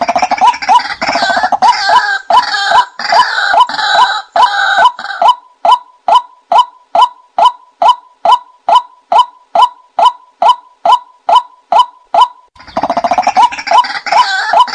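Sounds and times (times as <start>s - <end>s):
white-breasted waterhen hollow calls: 0.0s - 14.7s.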